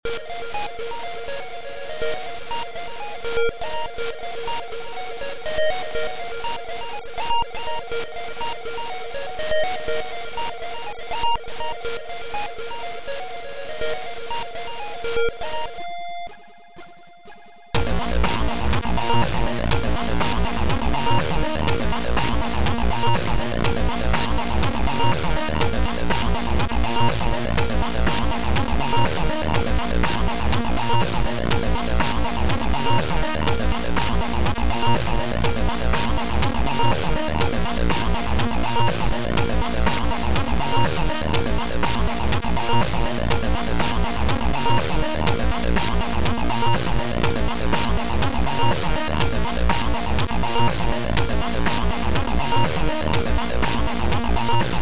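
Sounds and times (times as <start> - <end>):
ambient epilogue music: 0.1 - 54.8.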